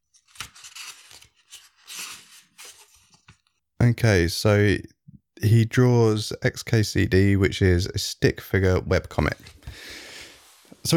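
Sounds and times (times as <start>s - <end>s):
book pages being turned: 0.1s - 3.6s
speech: 3.8s - 9.6s.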